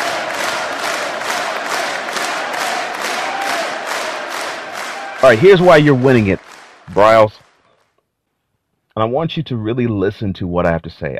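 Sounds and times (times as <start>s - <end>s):
crowd chanting and cheering: 0.0s - 7.3s
speech: 5.2s - 7.4s, 9.0s - 11.1s.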